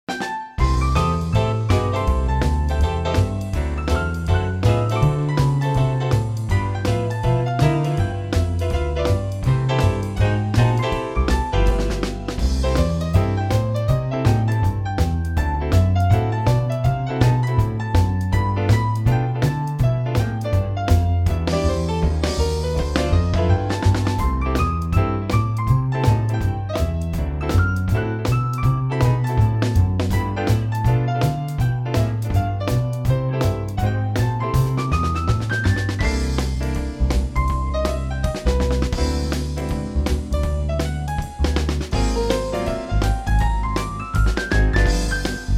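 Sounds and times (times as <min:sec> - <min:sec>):
swing music: 0:00.0 - 0:45.5.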